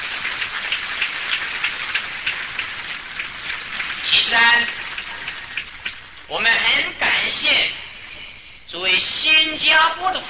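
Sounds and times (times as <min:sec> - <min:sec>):
audience applause: 0:00.0 - 0:06.2
speech: 0:06.3 - 0:07.8, 0:08.7 - 0:10.2.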